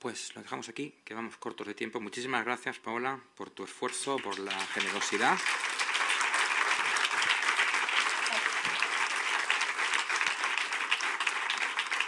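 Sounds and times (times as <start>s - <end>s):
speech: 0.0s - 5.8s
audience applause: 4.2s - 12.0s.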